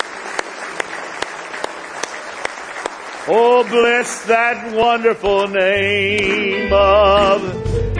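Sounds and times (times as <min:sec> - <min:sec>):
scattered applause: 0:00.0 - 0:05.5
crowd clapping hands in praise: 0:00.0 - 0:07.4
speech: 0:03.2 - 0:07.8.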